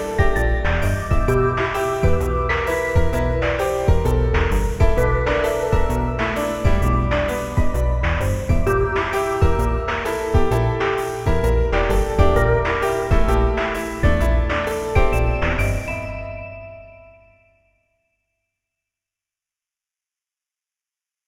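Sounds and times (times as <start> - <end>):
jazz music: 0.0 - 16.3.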